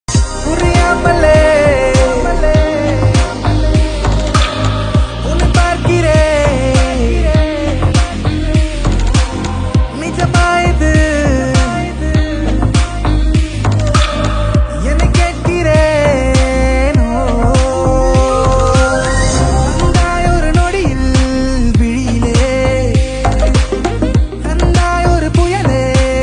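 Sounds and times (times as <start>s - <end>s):
love ringtone background music: 0.1s - 26.1s.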